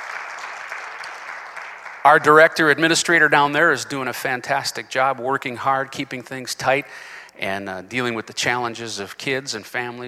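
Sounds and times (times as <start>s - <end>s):
audience clapping: 0.0s - 3.3s
speech: 2.0s - 10.0s.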